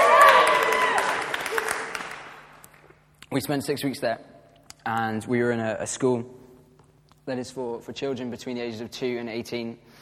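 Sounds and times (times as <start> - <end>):
audience applause: 0.0 - 2.6
crowd cheering: 0.0 - 2.6
speech: 3.3 - 6.4, 7.2 - 10.0.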